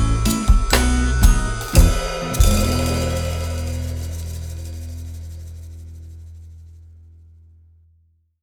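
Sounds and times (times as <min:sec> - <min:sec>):
instrumental music: 0:00.0 - 0:05.8.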